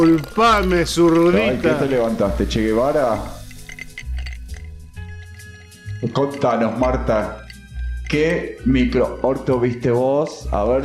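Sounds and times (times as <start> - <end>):
speech: 0.0 - 3.4, 6.0 - 7.4, 8.1 - 10.8
drink being poured: 0.0 - 5.7
glass clinking: 0.0 - 9.0.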